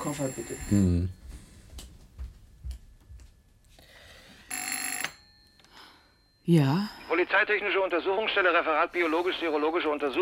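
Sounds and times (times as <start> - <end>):
speech: 0.0 - 1.2, 6.5 - 10.2
bright metallic telephone bell ringing: 0.0 - 1.6, 4.1 - 7.3.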